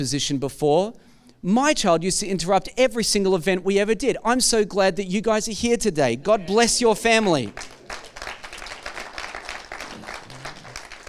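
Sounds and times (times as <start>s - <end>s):
speech: 0.0s - 7.8s
crowd clapping: 7.2s - 11.0s.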